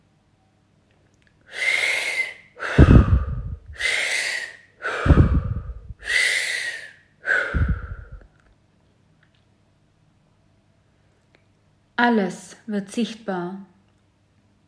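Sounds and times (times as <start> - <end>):
deep breathing during a guided meditation: 1.5 - 8.4
speech: 12.0 - 13.7.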